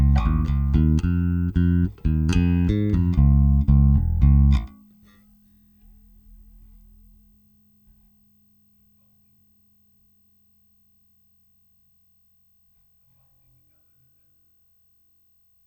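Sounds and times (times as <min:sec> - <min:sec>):
electric bass DI: 0:00.0 - 0:05.0.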